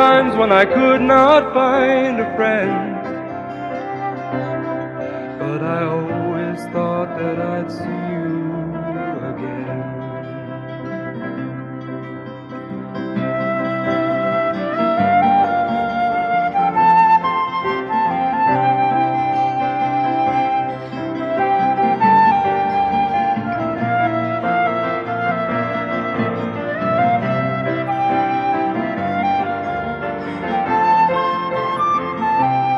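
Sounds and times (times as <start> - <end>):
vocals: 0.0 - 3.6, 5.0 - 10.5
flute: 0.0 - 32.7.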